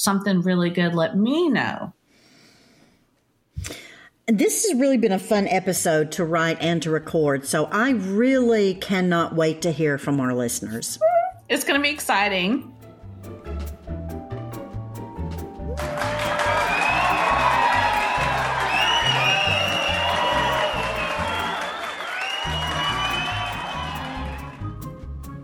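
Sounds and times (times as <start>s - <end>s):
speech: 0.0s - 2.0s, 3.6s - 12.8s
fans cheering and applauding: 15.7s - 24.8s.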